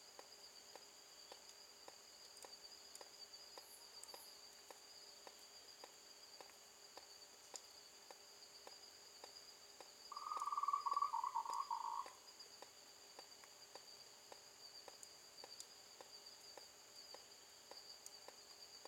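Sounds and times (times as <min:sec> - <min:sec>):
frog calling with a fast train of short pulsed notes in the evening: 0:10.1 - 0:12.2.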